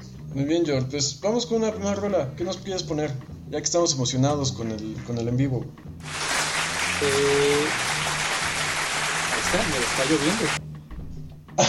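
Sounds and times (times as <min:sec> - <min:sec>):
speech: 0:00.4 - 0:06.4, 0:07.0 - 0:07.9, 0:09.5 - 0:10.6
applause: 0:06.0 - 0:10.6.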